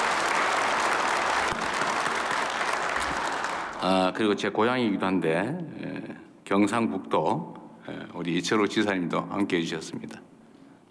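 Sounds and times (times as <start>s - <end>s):
audience applause: 0.0s - 3.8s
speech: 3.8s - 5.9s, 6.5s - 10.2s.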